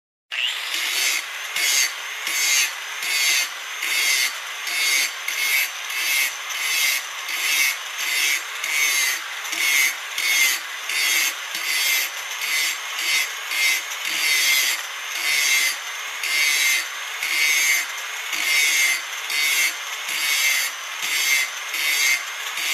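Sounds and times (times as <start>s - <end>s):
construction noise: 0.3s - 22.7s.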